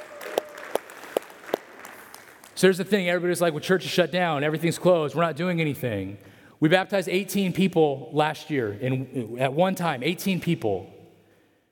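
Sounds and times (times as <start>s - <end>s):
sparse audience clapping: 0.0s - 2.7s
speech: 2.6s - 11.0s.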